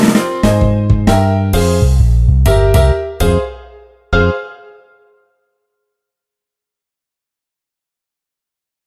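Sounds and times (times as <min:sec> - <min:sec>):
instrumental music: 0:00.0 - 0:05.4.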